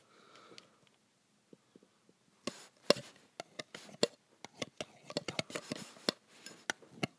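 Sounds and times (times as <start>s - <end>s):
graphite scraping and tapping on metal: 2.5s - 7.1s.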